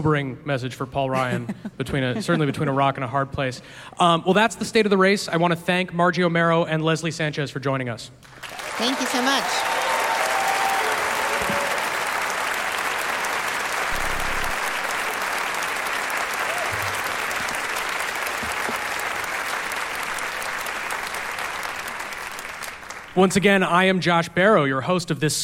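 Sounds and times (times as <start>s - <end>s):
speech: 0.0s - 9.8s, 23.2s - 25.4s
audience applause in a theater: 8.2s - 23.5s.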